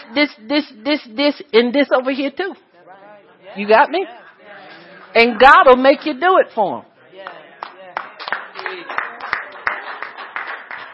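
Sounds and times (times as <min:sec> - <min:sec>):
speech: 0:00.1 - 0:02.7, 0:03.6 - 0:04.2, 0:05.2 - 0:07.3
sparse weak hand clapping from an audience: 0:07.2 - 0:10.9.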